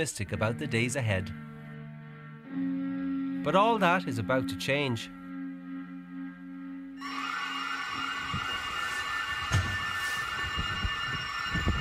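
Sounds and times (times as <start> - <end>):
speech: 0.0 - 1.5, 2.5 - 2.8, 3.4 - 5.2
high-pitched electronic alarm going off at night: 4.3 - 11.7.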